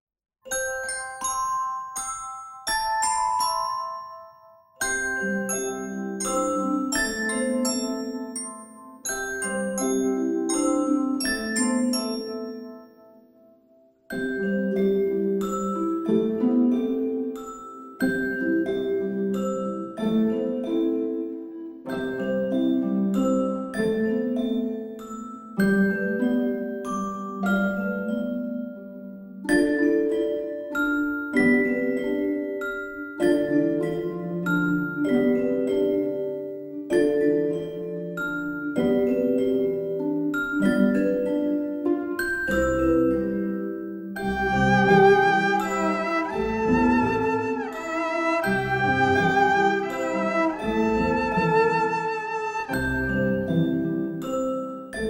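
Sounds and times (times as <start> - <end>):
lullaby music: 0.4 - 55.0.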